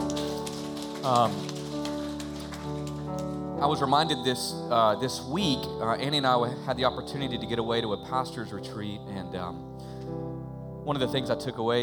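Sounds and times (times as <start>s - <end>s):
audience clapping: 0.0s - 3.6s
speech: 1.0s - 1.6s, 3.6s - 10.2s, 10.9s - 11.8s.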